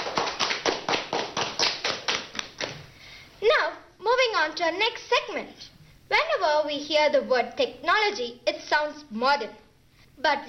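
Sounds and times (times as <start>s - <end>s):
sharp evenly spaced claps: 0.0s - 2.9s
speech: 4.4s - 9.6s, 10.2s - 10.4s.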